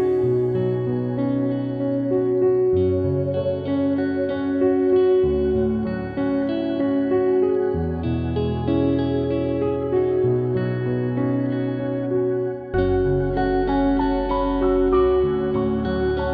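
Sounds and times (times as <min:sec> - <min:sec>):
background music: 0:00.0 - 0:16.3.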